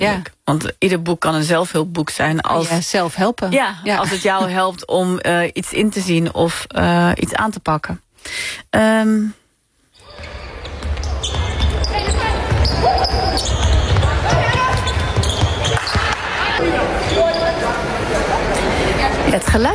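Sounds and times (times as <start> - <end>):
speech: 0.0 - 9.4, 19.4 - 19.7
sneakers squeaking on a gymnasium floor: 9.9 - 17.8
ball bouncing in a gymnasium: 10.2 - 16.2
busy hubbub of voices in a gymnasium: 11.4 - 19.7.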